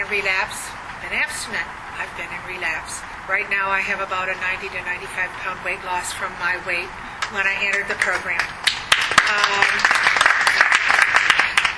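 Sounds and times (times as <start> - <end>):
speech: 0.1 - 8.7, 9.3 - 10.0
audience applause: 8.6 - 11.7.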